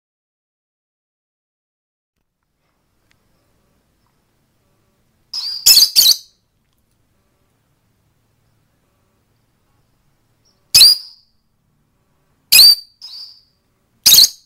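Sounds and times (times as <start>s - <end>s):
female lovebird squeaking: 5.4s - 6.3s, 10.8s - 11.2s, 12.5s - 13.5s, 14.1s - 14.4s.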